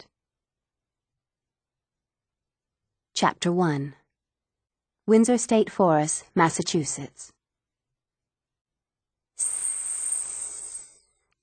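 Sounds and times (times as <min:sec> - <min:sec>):
speech: 0:03.2 - 0:04.0, 0:05.1 - 0:07.4
hiss of escaping air: 0:09.4 - 0:10.9.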